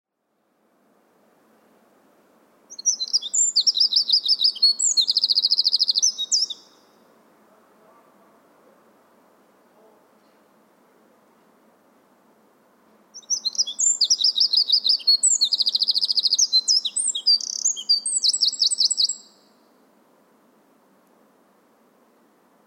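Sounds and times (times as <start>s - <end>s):
Eurasian wren singing: 2.7s - 7.1s, 13.2s - 19.7s.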